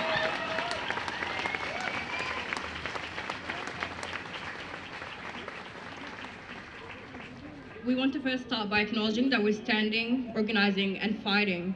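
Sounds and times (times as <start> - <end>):
crowd clapping: 0.0 - 7.8
speech: 7.9 - 11.7.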